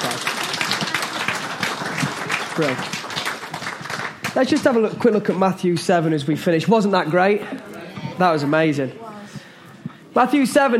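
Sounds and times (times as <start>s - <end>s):
audience applause: 0.0s - 5.2s
speech: 2.6s - 3.0s, 4.4s - 9.0s, 10.2s - 10.7s.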